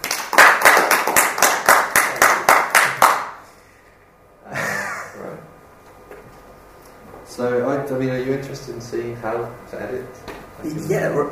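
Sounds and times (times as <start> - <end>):
audience applause: 0.0 - 3.4
speech: 7.4 - 11.2.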